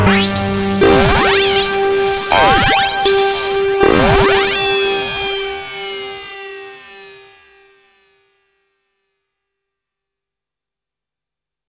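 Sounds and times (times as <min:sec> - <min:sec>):
pulse arpeggio: 0:00.0 - 0:07.9.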